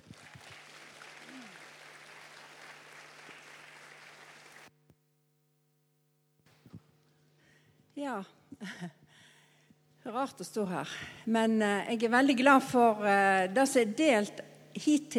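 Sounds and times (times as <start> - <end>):
audience applause: 0.0 - 4.7
speech: 8.0 - 9.0, 10.1 - 15.1.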